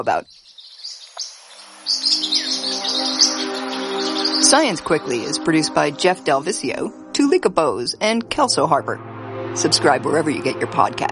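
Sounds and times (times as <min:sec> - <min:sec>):
speech: 0:00.0 - 0:00.5, 0:02.1 - 0:03.0, 0:04.4 - 0:11.0
parrotlet calls: 0:00.2 - 0:04.6.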